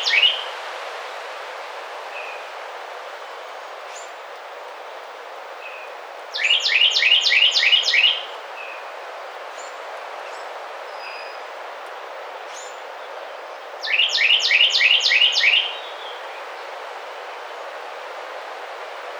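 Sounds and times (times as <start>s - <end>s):
Carolina wren ringing song: 5.6s - 8.8s, 13.8s - 15.8s.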